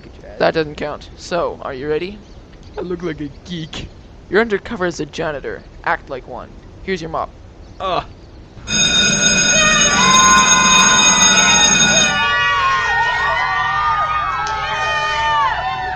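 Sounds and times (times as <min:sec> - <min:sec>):
speech: 0:00.2 - 0:08.2, 0:10.0 - 0:11.1
school bell ringing: 0:08.6 - 0:13.0
children shouting at school recess: 0:09.5 - 0:15.9.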